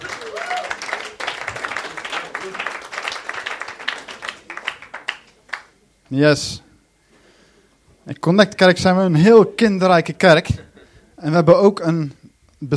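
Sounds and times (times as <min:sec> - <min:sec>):
audience applause: 0:00.0 - 0:05.8
speech: 0:06.1 - 0:06.6, 0:08.1 - 0:12.7.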